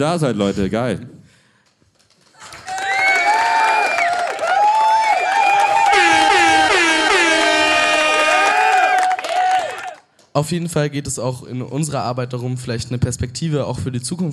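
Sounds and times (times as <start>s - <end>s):
speech: 0.0s - 1.2s, 10.4s - 14.3s
audience applause: 2.2s - 10.0s.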